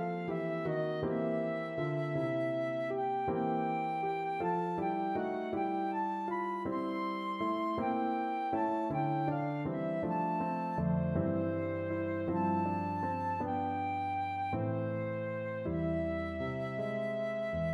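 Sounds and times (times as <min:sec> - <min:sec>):
flute lullaby: 0:00.0 - 0:17.7.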